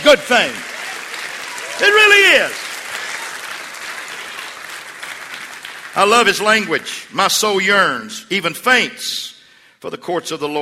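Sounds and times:
audience clapping: 0.0 - 7.0
speech: 0.1 - 0.7, 1.8 - 2.6, 6.0 - 10.6.

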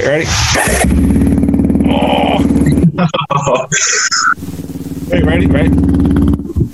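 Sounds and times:
motorcycle engine revving through an aftermarket exhaust pipe: 0.0 - 6.7
speech: 0.1 - 1.2, 3.0 - 6.6
laughter: 2.4 - 4.3.

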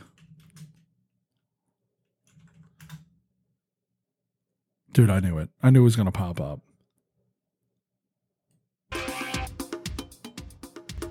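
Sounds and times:
typing a search on a computer keyboard: 0.0 - 0.9, 2.3 - 3.1
speech: 5.0 - 6.7.

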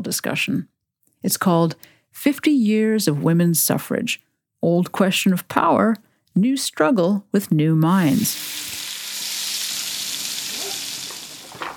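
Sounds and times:
speech: 0.0 - 8.8
fat sizzling in a frying pan: 8.0 - 11.7.

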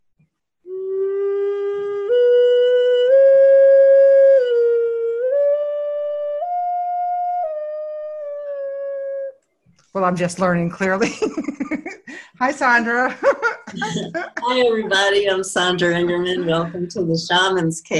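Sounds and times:
wind whistle playing: 0.7 - 9.4
speech: 10.1 - 17.9
laughter: 11.0 - 12.4, 13.1 - 17.1.

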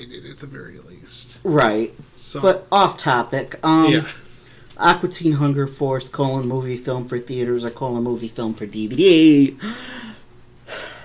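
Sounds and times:
speech: 0.0 - 4.2, 4.8 - 10.1
man panting catching his breath: 9.6 - 11.0.

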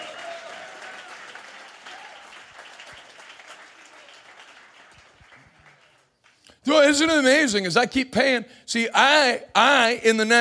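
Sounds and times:
audience clapping hands: 0.0 - 6.6
speech: 6.6 - 10.3.

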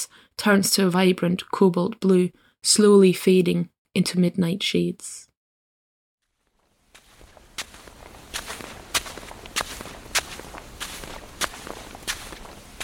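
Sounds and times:
speech: 0.0 - 5.2
footsteps walking on a sandy beach: 6.2 - 12.8.

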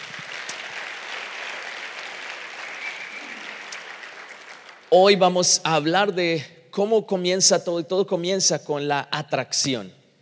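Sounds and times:
audience applause: 0.0 - 4.9
speech: 4.9 - 10.0.

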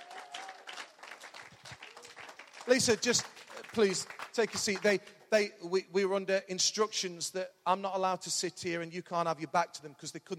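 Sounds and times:
audience applause: 0.0 - 5.0
speech: 2.7 - 10.3.

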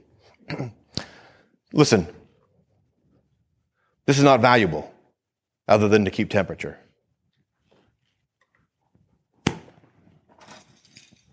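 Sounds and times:
speech: 0.5 - 0.8, 1.7 - 2.2, 4.1 - 4.9, 5.7 - 6.8
bunch of keys landing with a clack: 10.3 - 11.3.

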